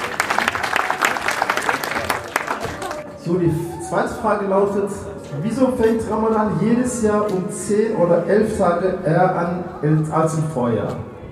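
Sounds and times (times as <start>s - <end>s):
room full of people applauding: 0.0s - 3.1s
speech: 3.2s - 11.1s.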